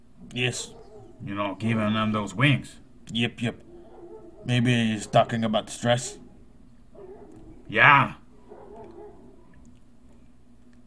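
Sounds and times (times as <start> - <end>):
speech: 0.4 - 3.6, 4.4 - 6.2, 7.7 - 8.2
dog barking: 0.5 - 1.3, 3.6 - 7.7, 8.3 - 9.6.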